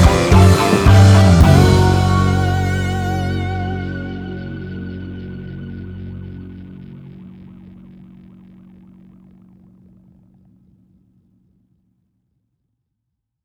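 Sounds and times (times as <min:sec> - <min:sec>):
waltz: 0:00.0 - 0:06.6.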